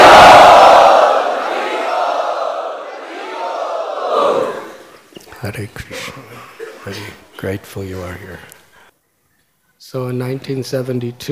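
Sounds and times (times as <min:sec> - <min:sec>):
crowd loudly chanting at a religious gathering: 0:00.0 - 0:05.1
speech: 0:05.6 - 0:08.6, 0:09.8 - 0:11.3.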